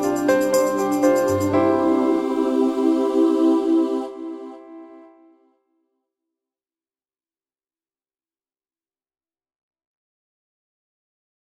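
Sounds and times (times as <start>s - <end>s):
piano: 0.0s - 5.5s.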